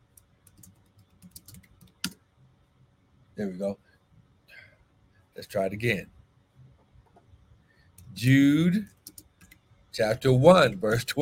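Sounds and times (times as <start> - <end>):
computer keyboard typing: 0.1 - 2.2, 8.9 - 9.6
speech: 3.4 - 3.9, 5.4 - 6.2, 8.2 - 8.9, 10.0 - 11.2.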